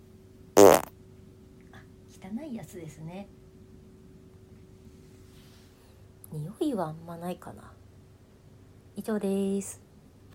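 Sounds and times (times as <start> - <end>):
fart: 0.6 - 0.9
speech: 2.2 - 3.4, 6.3 - 7.8, 9.0 - 9.8.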